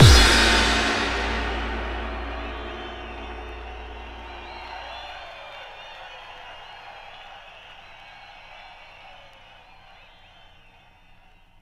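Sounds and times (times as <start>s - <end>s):
bass drum kick with reverb: 0.0s - 5.2s.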